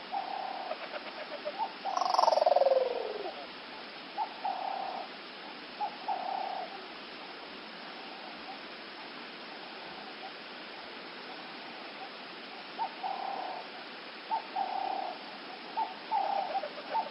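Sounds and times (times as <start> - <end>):
dove cooing in Africa: 0.0 - 3.6, 4.2 - 7.0, 12.0 - 17.0.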